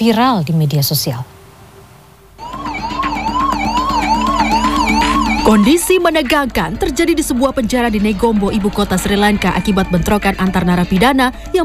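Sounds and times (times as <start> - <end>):
speech: 0.0 - 1.4, 5.5 - 11.6
ambulance siren wailing: 2.4 - 6.4.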